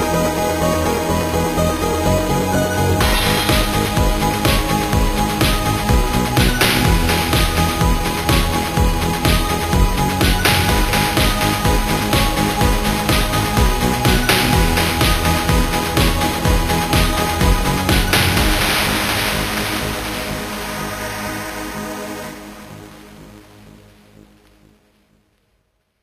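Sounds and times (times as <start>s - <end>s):
lo-fi victory music: 0.0s - 23.8s.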